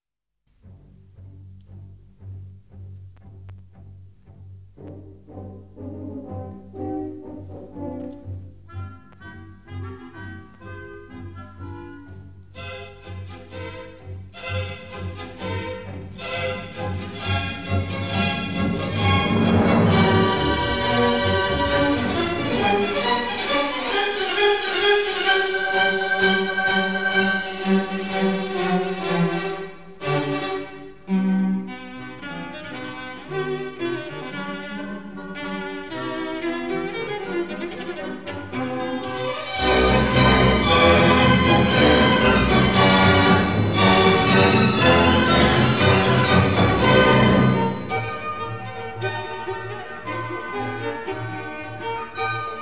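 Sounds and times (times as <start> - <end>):
cello concerto: 0.6 - 52.6.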